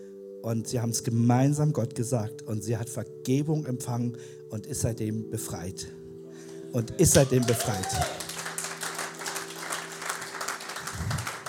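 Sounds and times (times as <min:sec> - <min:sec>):
speech: 0:00.4 - 0:08.3
audience applause: 0:07.1 - 0:11.4.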